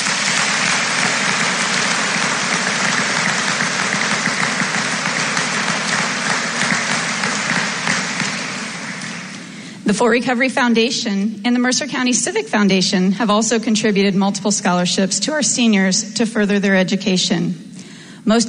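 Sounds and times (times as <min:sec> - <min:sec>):
audience applause: 0:00.0 - 0:09.6
speech: 0:09.9 - 0:18.4.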